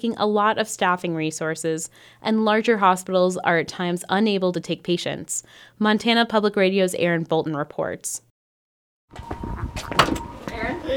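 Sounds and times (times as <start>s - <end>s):
speech: 0.0s - 8.3s, 9.1s - 10.0s, 10.8s - 10.9s
door opening at a community health center in Libby, Montana: 9.2s - 10.6s
sharp knock: 9.8s - 10.2s.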